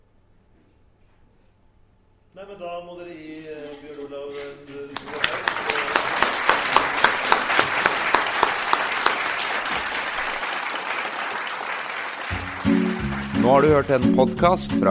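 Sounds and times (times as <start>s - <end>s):
speech: 2.4s - 5.5s, 13.4s - 14.9s
audience clapping: 5.0s - 14.3s.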